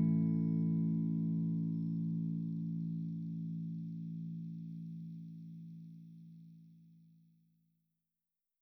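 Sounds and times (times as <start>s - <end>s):
Jackson electric guitar clean tone: 0.0s - 5.9s.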